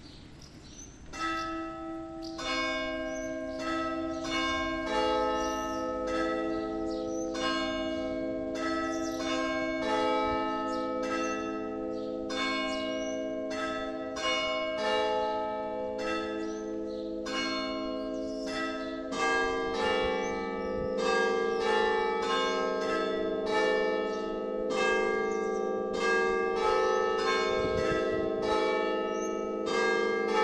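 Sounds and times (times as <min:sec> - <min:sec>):
birds: 0:00.0 - 0:09.7, 0:10.6 - 0:13.4, 0:16.3 - 0:22.4
village bell tower ringing the hours: 0:01.1 - 0:30.4.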